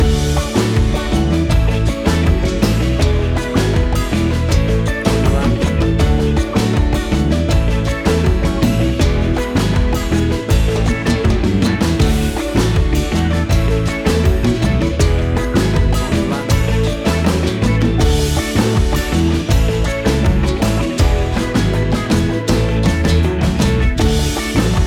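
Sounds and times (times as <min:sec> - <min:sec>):
calypso summer groove: 0:00.0 - 0:24.8.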